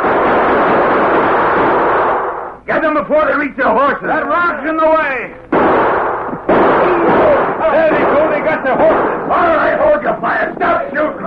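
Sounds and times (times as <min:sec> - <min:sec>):
gunfire: 0:00.0 - 0:02.6, 0:05.5 - 0:11.1
speech: 0:02.9 - 0:05.9, 0:06.8 - 0:11.2.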